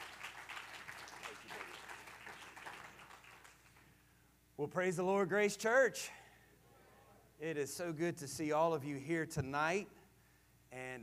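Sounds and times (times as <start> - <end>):
audience clapping hands: 0.0 - 3.9
speech: 4.6 - 6.2, 7.4 - 10.0, 10.7 - 11.0.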